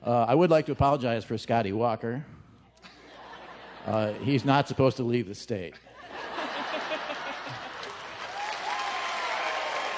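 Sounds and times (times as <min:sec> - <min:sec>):
speech: 0:00.1 - 0:02.4, 0:03.9 - 0:06.4
laughter: 0:02.8 - 0:04.8, 0:05.8 - 0:08.5
audience applause: 0:06.7 - 0:09.9.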